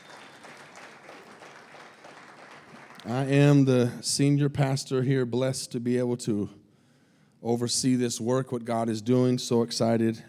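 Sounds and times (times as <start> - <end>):
crowd applause: 0.0 - 3.6
speech: 3.0 - 6.6, 7.4 - 10.2.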